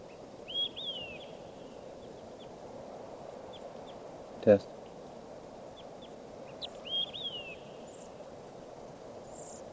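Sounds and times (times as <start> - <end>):
bird chirps: 0.0 - 2.6, 3.5 - 4.1, 4.9 - 8.3, 9.2 - 9.6
bird whistled calls: 0.5 - 1.8, 6.5 - 8.2
speech: 4.4 - 4.8.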